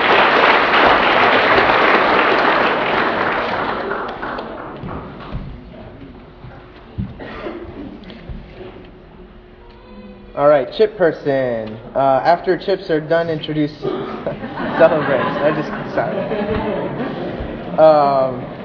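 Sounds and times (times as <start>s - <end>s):
round of applause: 0.0s - 4.8s
speech: 10.7s - 18.6s
laughter: 14.1s - 18.6s.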